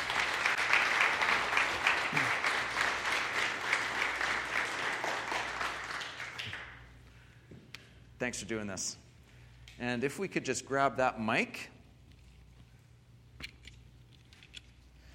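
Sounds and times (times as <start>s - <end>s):
audience applause: 0.0s - 6.9s
speech: 8.2s - 9.0s, 9.8s - 11.7s.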